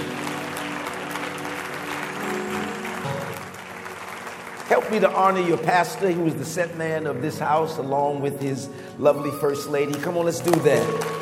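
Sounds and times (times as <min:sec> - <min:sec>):
audience clapping: 0:00.0 - 0:07.9, 0:09.2 - 0:11.2
speech: 0:04.7 - 0:11.2.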